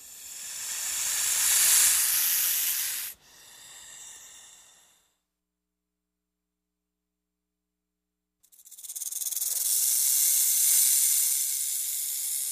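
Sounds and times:
snake hissing: 0.0s - 5.1s, 8.4s - 12.5s.

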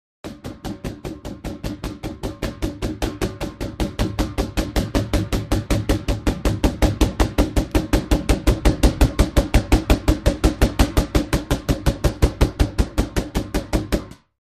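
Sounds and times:
multiple punches on a punch ball: 0.3s - 14.2s.

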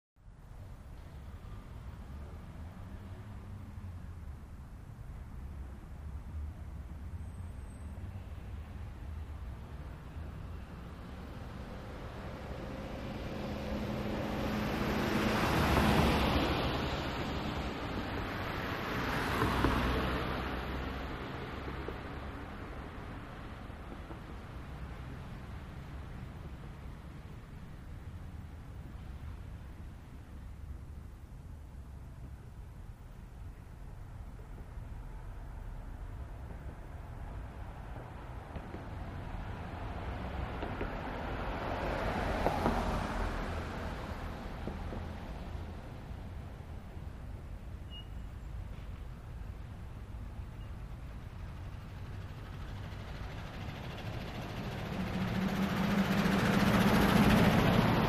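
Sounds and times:
urban residential traffic: 0.2s - 58.0s.

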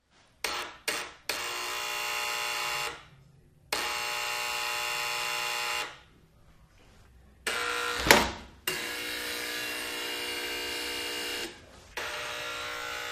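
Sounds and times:
apartment door buzzer buzzing: 0.4s - 3.0s, 3.7s - 6.0s, 7.5s - 13.1s
apartment door opening: 8.0s - 8.6s.

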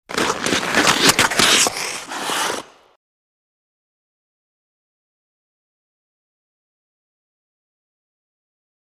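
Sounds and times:
hockey skates on a fast skating run: 0.0s - 3.0s.

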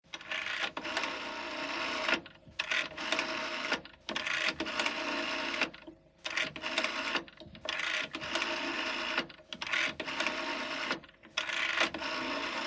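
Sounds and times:
British call box pulse rotary dialing: 0.1s - 12.6s.

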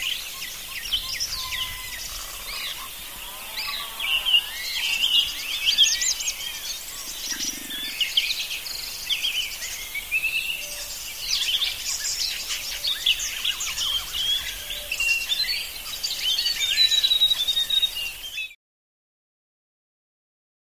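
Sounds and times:
active country birds: 0.0s - 18.6s.

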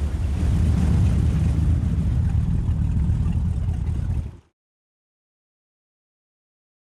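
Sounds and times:
offshore power boat starting away heard from interior: 0.1s - 4.5s.

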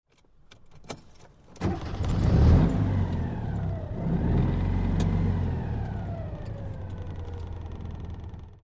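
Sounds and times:
Citroen 2CV engine starting heard from interior: 1.6s - 8.6s
Citroen 2CV engine idling: 3.0s - 8.6s.

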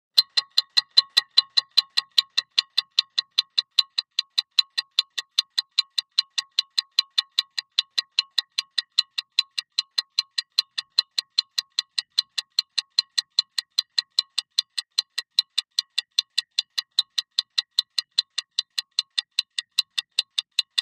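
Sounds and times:
tinny metal stopwatch ticking: 0.2s - 20.8s.

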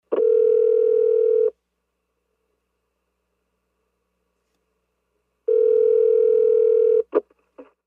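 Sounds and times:
cell phone inline ring: 0.1s - 1.5s, 5.5s - 7.1s.

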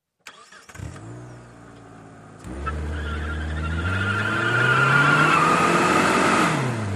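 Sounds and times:
mid-size sedan peeling out: 0.4s - 6.8s.

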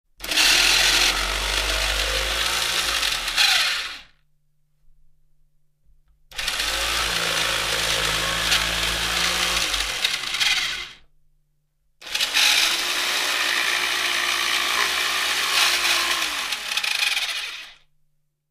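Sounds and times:
broken saber saw straining while cutting wood: 0.3s - 4.1s, 6.4s - 11.0s, 12.0s - 17.8s.

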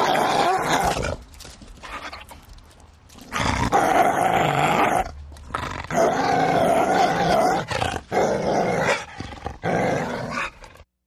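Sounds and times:
large dog growling angrily: 0.0s - 1.2s, 3.3s - 10.8s.

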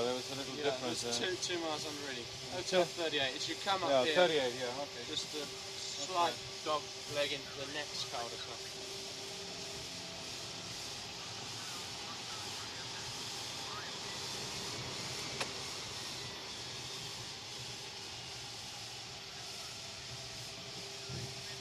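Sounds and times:
crew reading after-landing checklist in Boeing 707 cockpit: 0.0s - 13.4s
Boeing 707 taxiing: 0.0s - 21.5s.

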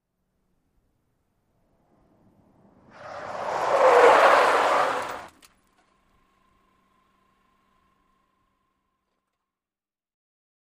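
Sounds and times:
small compact car 180 skid: 2.5s - 5.5s.

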